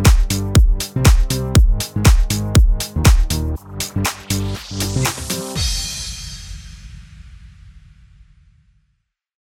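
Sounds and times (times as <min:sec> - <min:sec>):
house music bed in G sharp minor at 120 BPM: 0:00.0 - 0:06.8.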